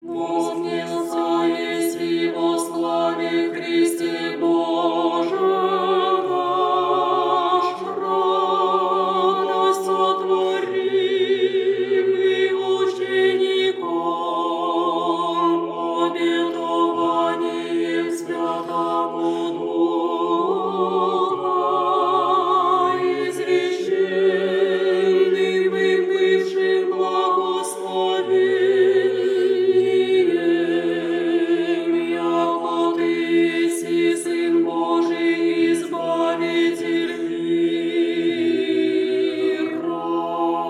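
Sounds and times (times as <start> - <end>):
Orthodox troparion chant in tone four: 0.0 - 40.6.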